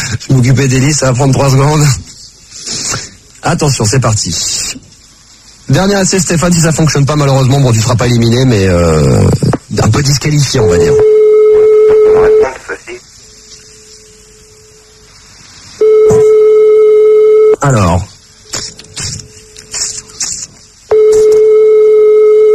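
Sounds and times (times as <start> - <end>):
speech: 0.3 - 2.1, 3.4 - 4.9, 5.7 - 11.2
telephone ringback tone: 11.0 - 12.6, 15.8 - 17.6, 20.9 - 22.5.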